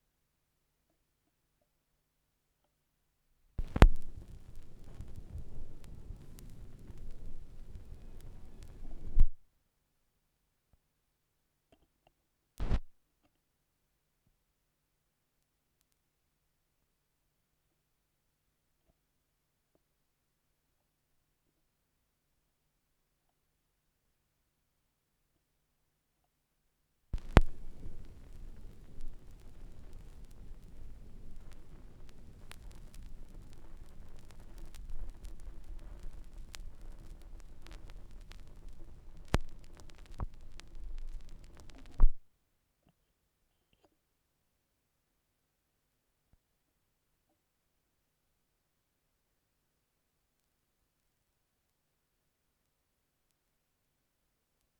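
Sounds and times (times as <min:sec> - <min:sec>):
vinyl record noise: 0:03.6 - 0:09.4, 0:12.6 - 0:12.9, 0:27.2 - 0:42.2.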